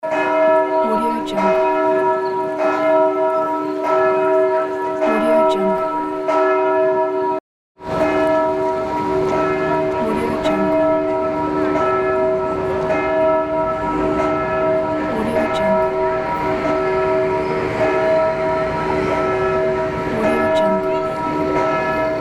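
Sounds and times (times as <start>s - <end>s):
city church bell: 0.0s - 22.1s.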